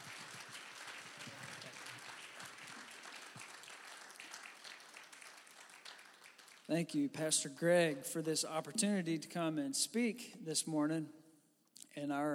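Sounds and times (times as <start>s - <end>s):
church congregation applause at a Church of God morning service: 0.0s - 6.8s
speech: 6.7s - 11.2s, 12.0s - 12.3s.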